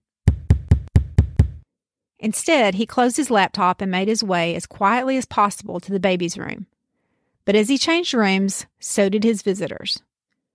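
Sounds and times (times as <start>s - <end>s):
heavy thumping knocks on a window: 0.3s - 1.6s
speech: 2.2s - 6.7s, 7.4s - 10.1s.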